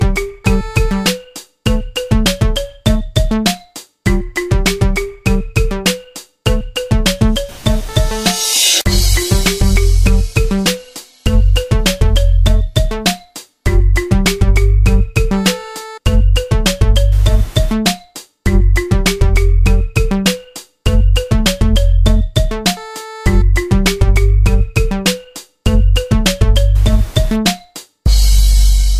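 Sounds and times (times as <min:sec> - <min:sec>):
xylophone: 0:00.0 - 0:27.7.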